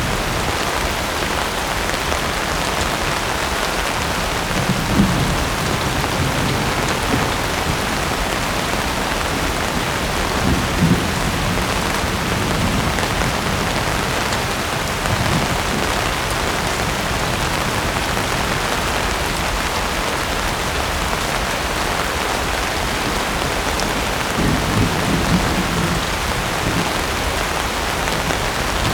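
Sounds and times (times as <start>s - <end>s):
constant rain storm: 0.0s - 28.9s
distant thunder: 4.3s - 18.7s, 23.0s - 28.9s.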